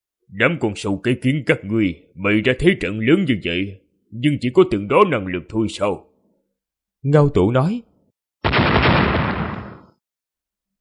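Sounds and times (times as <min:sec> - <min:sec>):
speech: 0:00.3 - 0:06.1, 0:07.0 - 0:07.9
thunderous explosion boom: 0:08.4 - 0:10.0.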